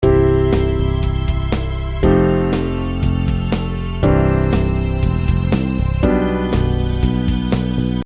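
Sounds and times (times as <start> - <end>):
synth pad top end: 0.0 - 8.0.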